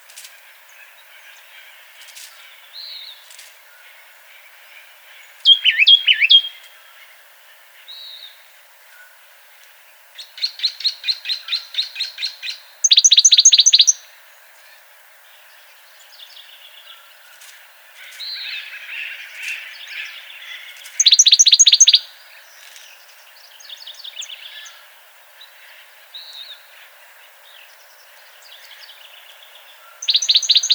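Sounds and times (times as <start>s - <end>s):
Baeolophus inornatus oak titmouse calling: 5.4s - 6.6s, 12.8s - 14.0s, 21.0s - 22.0s, 30.0s - 30.7s.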